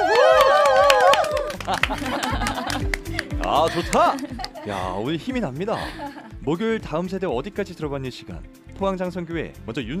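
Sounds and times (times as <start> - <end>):
people whooping and cheering: 0.0 - 2.7
audience clapping in quick steady rhythm: 0.0 - 4.7
laughter: 1.3 - 5.0, 5.6 - 6.3
speech: 3.5 - 9.9.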